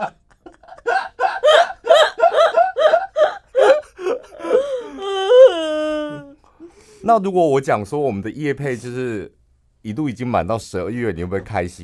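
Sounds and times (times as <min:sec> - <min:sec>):
choppy sobbing bursts ending in a long high wavering wail: 0:00.0 - 0:06.4
person crying while recording a podcast: 0:00.0 - 0:06.4
speech: 0:07.1 - 0:11.8.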